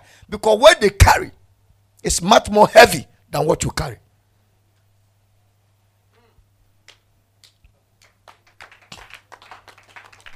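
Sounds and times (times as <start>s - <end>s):
speech: 0.3s - 1.4s, 2.0s - 4.0s
audience clapping: 6.8s - 10.3s.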